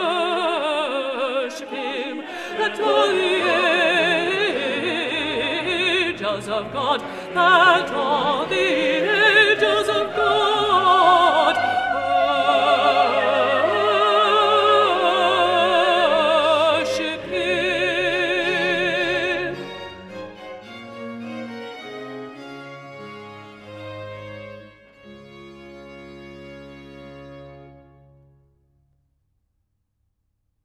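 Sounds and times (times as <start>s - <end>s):
contralto voices singing: 0.0s - 20.8s.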